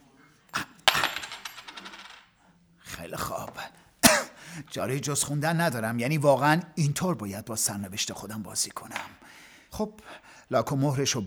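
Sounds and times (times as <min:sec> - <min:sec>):
20-kopeck coin tossed for heads or tails, clinking and spinning: 0:00.8 - 0:02.3
speech: 0:03.1 - 0:03.8, 0:04.6 - 0:11.2.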